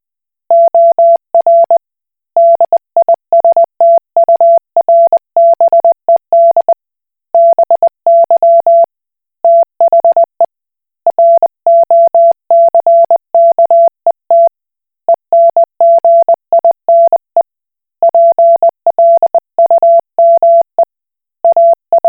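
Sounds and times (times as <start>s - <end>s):
Koch Morse code beeps: 0.5s - 1.8s, 2.4s - 6.7s, 7.4s - 8.9s, 9.5s - 10.3s, 11.1s - 14.5s, 15.3s - 17.3s, 18.1s - 20.9s, 21.5s - 22.0s.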